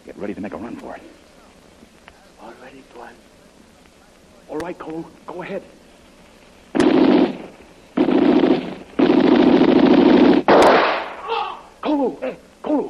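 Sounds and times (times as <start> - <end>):
speech: 0.2 - 1.3, 2.4 - 3.3, 4.5 - 5.8, 12.0 - 12.8
gunshot: 6.8 - 11.3.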